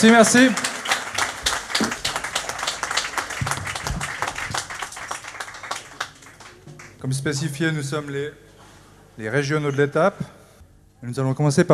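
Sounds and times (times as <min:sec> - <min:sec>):
speech: 0:00.0 - 0:00.6, 0:07.1 - 0:08.5, 0:09.2 - 0:10.4, 0:11.0 - 0:11.7
audience applause at a blues café welcoming a band: 0:00.0 - 0:07.2.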